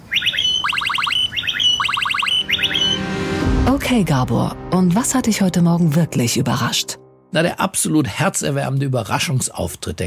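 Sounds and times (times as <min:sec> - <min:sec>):
blackbird imitating e-scooter chirp: 0:00.0 - 0:03.0
speech: 0:03.8 - 0:10.0.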